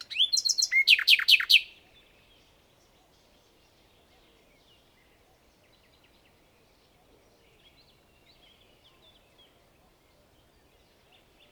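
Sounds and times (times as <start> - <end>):
Common nightingale Luscinia megarhynchos song: 0.0 - 11.5.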